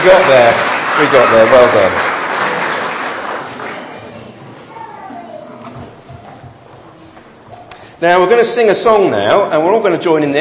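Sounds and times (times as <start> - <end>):
speech: 0.0 - 2.1, 8.0 - 10.3
crowd applauding: 0.0 - 4.2
children chattering: 3.3 - 7.7.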